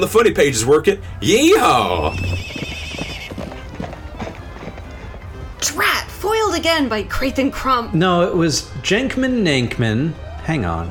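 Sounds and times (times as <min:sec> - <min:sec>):
speech: 0:00.0 - 0:02.6, 0:05.6 - 0:10.8
horse neighing: 0:01.2 - 0:04.0
horses clip-clopping: 0:01.3 - 0:06.4.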